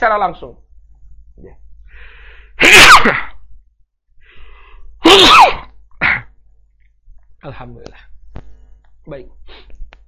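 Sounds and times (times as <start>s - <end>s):
speech: 0.0s - 0.7s, 1.4s - 3.3s, 7.4s - 8.1s, 9.0s - 9.7s
sharp inhale before sneezing: 1.9s - 2.6s, 4.2s - 5.0s
person sneezing: 2.6s - 3.4s, 5.0s - 6.4s.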